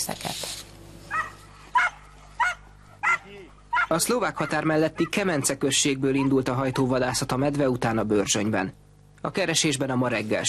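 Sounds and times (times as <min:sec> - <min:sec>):
hunting dogs barking during a forest bear hunt: 0:01.1 - 0:07.4
speech: 0:03.9 - 0:10.4.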